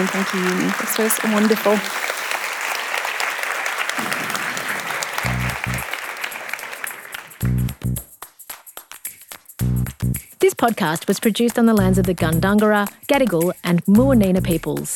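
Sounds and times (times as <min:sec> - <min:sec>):
speech: 0:00.0 - 0:02.1, 0:10.6 - 0:14.9
audience applause: 0:00.0 - 0:07.7.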